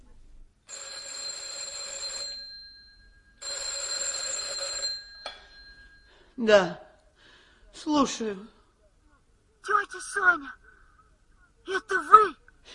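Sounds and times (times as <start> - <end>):
telephone ringing after dialing: 0.7 - 6.2
speech: 6.4 - 6.8, 7.8 - 8.6, 9.6 - 10.6, 11.7 - 12.7.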